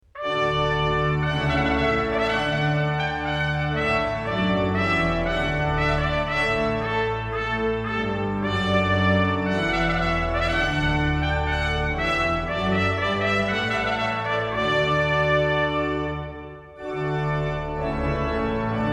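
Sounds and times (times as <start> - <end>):
trumpet piece: 0.0 - 18.9.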